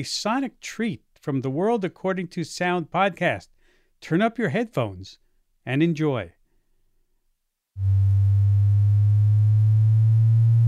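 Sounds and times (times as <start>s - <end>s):
speech: 0.0s - 6.4s, 7.8s - 8.0s
sonified gravitational waves from colliding black holes: 7.8s - 10.6s.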